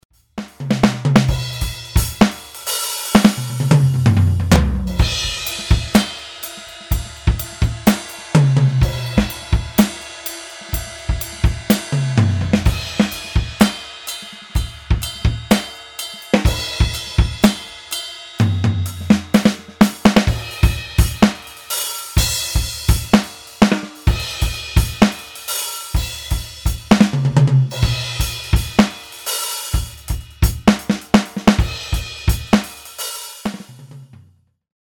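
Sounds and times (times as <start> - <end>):
drum kit groove: 0.0 - 34.2.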